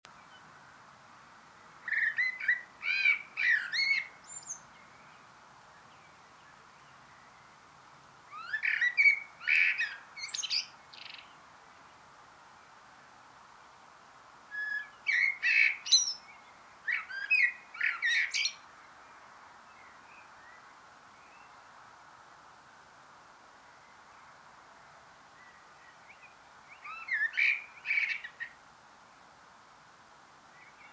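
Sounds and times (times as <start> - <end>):
common blackbird calling: 1.8 - 4.7, 8.3 - 11.3, 14.6 - 16.3, 16.9 - 18.6, 26.7 - 28.6.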